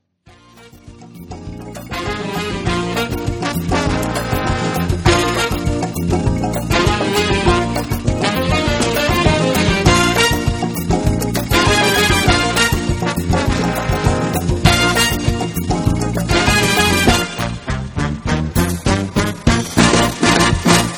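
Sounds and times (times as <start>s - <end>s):
mambo music: 0.3s - 20.9s.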